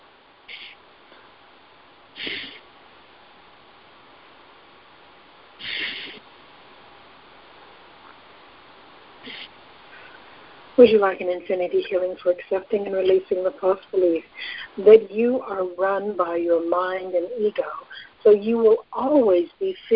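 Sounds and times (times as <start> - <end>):
steady hiss: 0.0 - 19.9
deep breaths during a guided healing session: 5.6 - 6.2, 9.2 - 10.6, 14.3 - 14.8
speech: 10.8 - 19.9.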